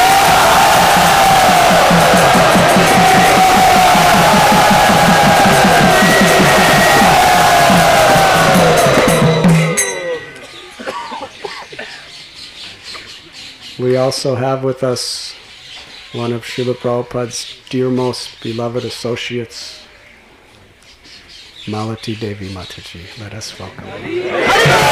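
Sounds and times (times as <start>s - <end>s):
audience cheering and applauding in welcome: 0.0s - 10.4s, 24.1s - 24.9s
speech: 13.9s - 15.3s, 16.1s - 19.8s, 21.6s - 24.9s.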